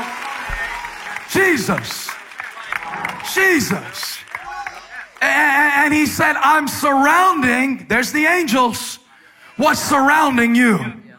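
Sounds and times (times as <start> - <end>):
audience clapping: 0.0 - 6.5
speech: 1.3 - 2.0, 3.3 - 4.2, 5.2 - 8.9, 9.6 - 11.0.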